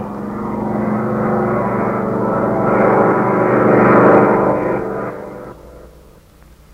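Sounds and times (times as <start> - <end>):
Nazi plane engine roaring in a power dive: 0.0 - 6.7.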